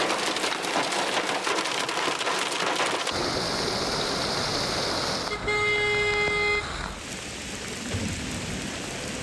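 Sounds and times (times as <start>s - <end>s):
heavy rain on city streets: 0.0s - 9.2s
passing traffic: 3.1s - 9.2s
sustained car horn toot: 5.2s - 7.0s.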